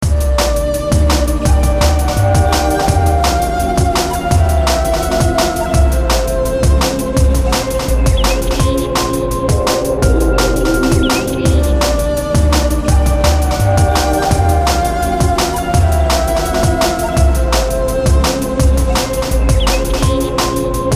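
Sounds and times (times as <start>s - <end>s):
jungle ambience: 0.4s - 20.9s.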